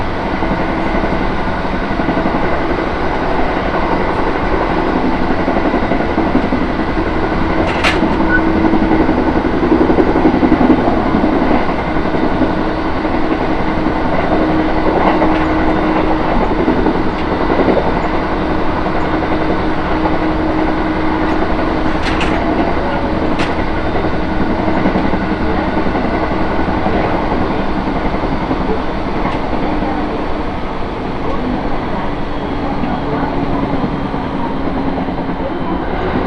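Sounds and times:
train rumbling on the Tohoku and Kitakami lines: 0.0s - 36.2s
metallic clicks and clacks: 21.3s - 22.6s.

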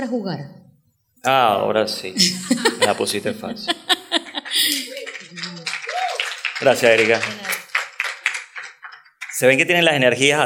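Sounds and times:
speech: 0.0s - 0.6s, 1.2s - 4.0s, 6.6s - 7.4s, 9.4s - 10.4s
laughter: 2.2s - 6.1s
audience applause: 4.2s - 9.7s.

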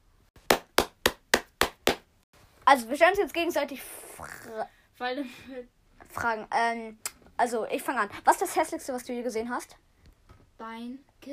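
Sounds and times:
applause hand clapping: 0.4s - 2.1s
speech: 2.7s - 9.9s, 10.6s - 11.3s.

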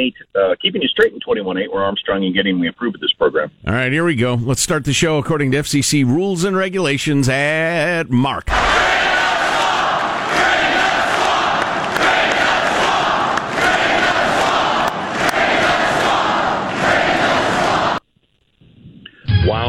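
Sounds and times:
speech: 0.0s - 9.2s
rally crowd cheering and shouting: 8.5s - 18.0s.

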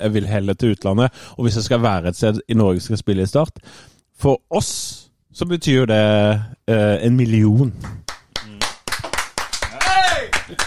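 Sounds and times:
speech: 0.0s - 8.0s
hand clapping: 7.8s - 10.6s.

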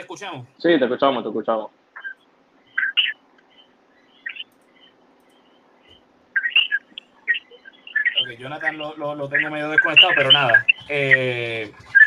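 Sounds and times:
speech: 0.0s - 1.8s, 8.3s - 11.8s
coquí frogs chirping: 1.9s - 11.2s.

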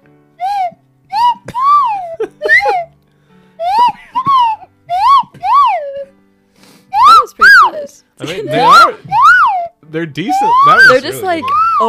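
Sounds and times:
slide whistle: 0.4s - 2.0s, 3.7s - 6.1s, 7.0s - 7.7s, 10.3s - 11.8s
laughter: 1.6s - 2.9s, 8.2s - 9.0s
speech: 8.2s - 8.8s, 9.9s - 11.8s.

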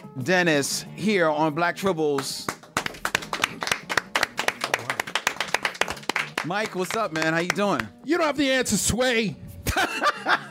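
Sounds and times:
speech: 0.2s - 2.6s, 6.4s - 10.4s
audience applause: 2.7s - 7.4s
laughter: 9.7s - 10.4s.

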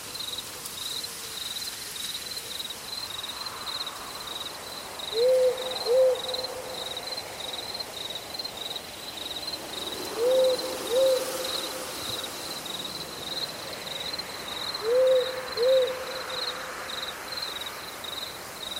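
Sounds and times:
crickets pulsing: 0.0s - 18.7s
owl hooting: 5.1s - 6.8s, 10.1s - 11.9s, 14.8s - 16.5s.

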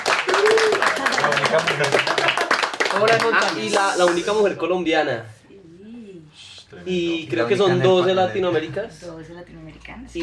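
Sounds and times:
crowd clapping: 0.0s - 4.3s
speech: 1.5s - 2.3s, 3.0s - 5.4s, 6.8s - 10.2s.

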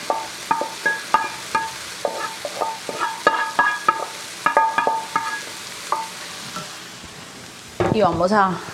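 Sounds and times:
constant low frying hiss: 0.0s - 8.7s
spoon stirring lentils into a flavour base in a pot: 0.5s - 6.1s
speech: 8.0s - 8.7s.

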